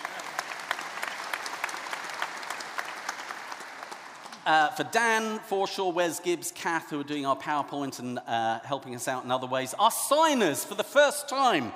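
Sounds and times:
audience applauding: 0.0s - 4.4s
speech: 4.4s - 11.7s.

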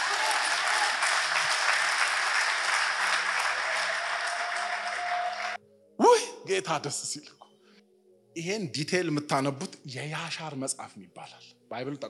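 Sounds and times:
church congregation clapping in praise: 0.0s - 5.6s
speech: 6.5s - 7.4s, 8.4s - 12.0s.

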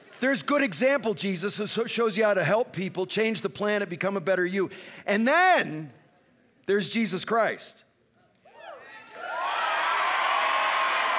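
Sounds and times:
speech: 0.2s - 6.0s, 6.7s - 7.8s
audience cheering, shouting and clapping: 8.8s - 11.1s.

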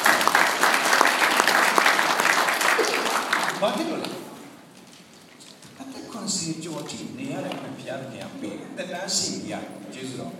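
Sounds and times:
audience applause: 0.0s - 4.2s
speech: 3.6s - 4.2s, 6.5s - 10.3s.

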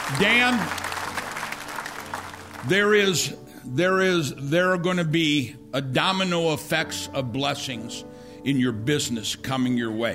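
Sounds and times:
congregation clapping as an offering to the Lord: 0.0s - 3.0s
speech: 0.1s - 0.9s, 2.6s - 10.1s.

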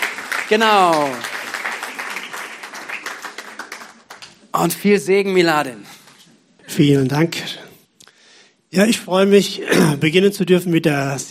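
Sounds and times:
applause: 0.0s - 4.6s
speech: 0.5s - 1.3s, 4.6s - 6.0s, 6.8s - 7.6s, 8.7s - 11.3s.

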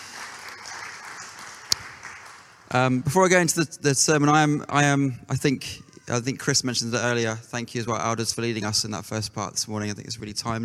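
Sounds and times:
audience applause: 0.0s - 3.1s
speech: 2.7s - 10.6s.

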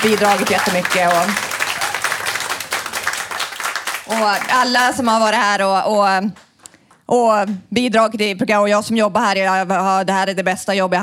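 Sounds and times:
speech: 0.0s - 1.5s, 4.1s - 6.4s, 7.1s - 11.0s
audience applause: 0.0s - 5.3s.

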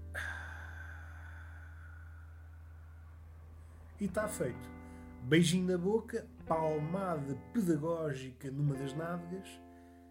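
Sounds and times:
deep breath: 0.0s - 4.0s, 4.7s - 5.2s
low hum: 0.0s - 6.7s
speech: 4.0s - 9.6s.

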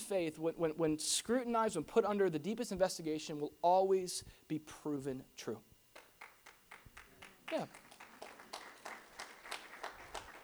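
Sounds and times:
speech: 0.1s - 5.7s, 7.5s - 7.8s
audience clapping: 5.9s - 10.4s.

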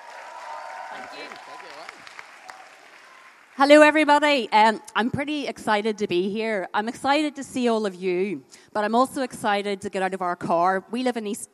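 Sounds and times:
audience clapping: 0.0s - 4.0s
speech: 0.9s - 2.6s, 3.6s - 11.5s.

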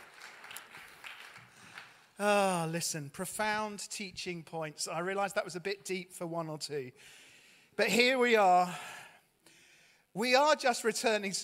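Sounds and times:
small round of applause: 0.0s - 2.2s
speech: 2.2s - 7.2s, 7.8s - 9.0s, 10.2s - 11.4s.

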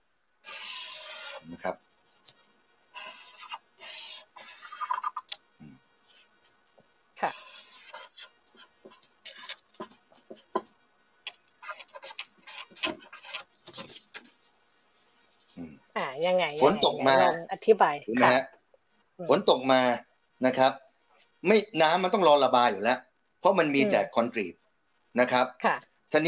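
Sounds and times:
pen scratching across paper drawing a diagram: 0.5s - 1.7s, 3.0s - 5.1s, 7.2s - 10.7s, 11.6s - 14.4s
speech: 1.4s - 1.9s, 16.2s - 18.5s, 19.2s - 20.8s, 21.4s - 24.6s, 25.2s - 26.2s.

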